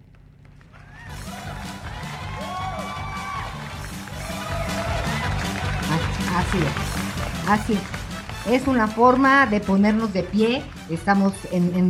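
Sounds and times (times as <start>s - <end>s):
applause sound effect: 0.0s - 11.0s
speech: 6.4s - 11.8s.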